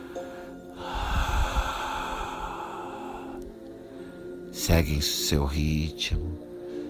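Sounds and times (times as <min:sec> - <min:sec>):
person breathing in through the nose and out in a breathing exercise: 0:00.0 - 0:04.5
speech: 0:04.7 - 0:06.5.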